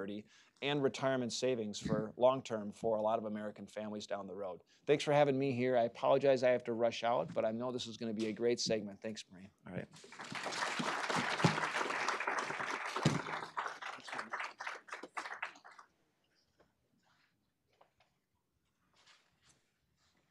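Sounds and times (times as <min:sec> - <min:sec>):
speech: 0:00.0 - 0:11.0
audience applause: 0:10.0 - 0:15.9.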